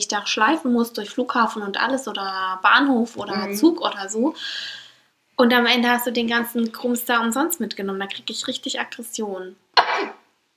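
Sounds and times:
speech: 0:00.0 - 0:04.8, 0:05.4 - 0:10.2
suppressed sneeze: 0:09.8 - 0:10.3.

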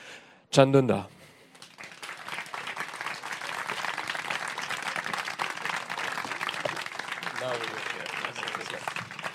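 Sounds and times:
speech: 0:00.5 - 0:01.2
audience applause: 0:01.5 - 0:09.3.

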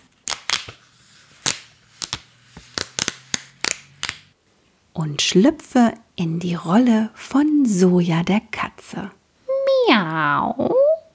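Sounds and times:
paper sheets being torn apart: 0:00.0 - 0:04.3
speech: 0:05.0 - 0:09.2, 0:09.8 - 0:10.8.

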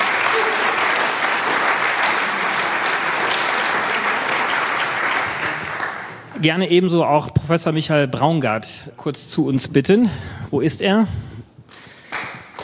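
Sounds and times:
audience applause: 0:00.0 - 0:06.3
speech: 0:06.4 - 0:11.3.

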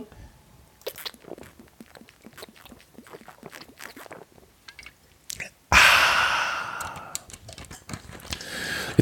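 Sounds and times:
person sipping a soft drink: 0:00.8 - 0:04.5, 0:05.3 - 0:07.4
fizzing hiss of soft drink carbonation: 0:00.8 - 0:05.5
soft clicks and mouth sounds: 0:00.8 - 0:09.0.

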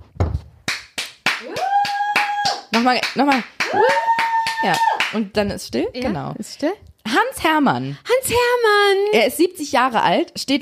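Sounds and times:
applause: 0:00.7 - 0:05.2
speech: 0:02.8 - 0:10.6.

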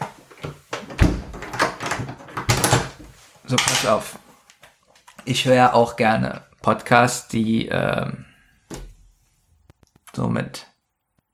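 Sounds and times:
door being closed and locked as a gag sound effect: 0:00.8 - 0:04.0
speech: 0:03.5 - 0:04.2, 0:05.3 - 0:08.3, 0:10.2 - 0:10.7.

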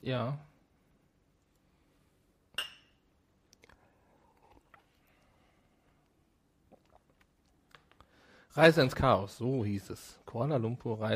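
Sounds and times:
speech: 0:00.0 - 0:00.5, 0:08.6 - 0:11.1
drinking glasses clinking in a toast: 0:02.6 - 0:03.0.

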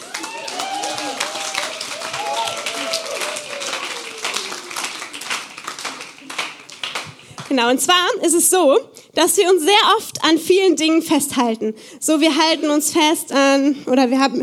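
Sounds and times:
audience applause: 0:00.0 - 0:07.5
speech: 0:07.5 - 0:14.4.

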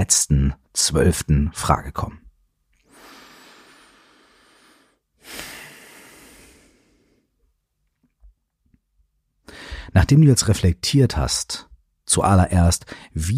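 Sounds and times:
speech: 0:00.0 - 0:02.2, 0:09.9 - 0:13.3
deep breath in and out during a guided relaxation: 0:02.8 - 0:07.5, 0:09.4 - 0:10.0.

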